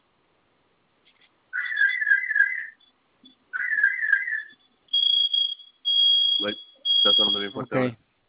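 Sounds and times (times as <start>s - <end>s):
alarm system siren: 1.6s - 2.9s, 3.5s - 7.8s
person speaking: 6.4s - 8.0s.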